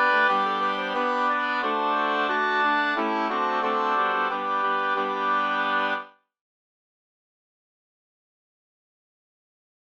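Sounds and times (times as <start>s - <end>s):
ganglat in G major: 0.0s - 6.1s.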